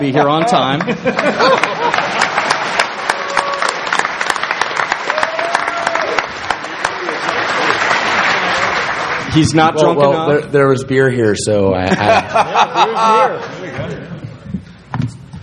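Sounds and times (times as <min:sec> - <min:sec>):
speech: 0:00.1 - 0:02.2, 0:09.3 - 0:13.9
crowd applauding: 0:00.2 - 0:10.0
laughter: 0:00.4 - 0:02.9, 0:06.6 - 0:10.2, 0:11.8 - 0:14.2.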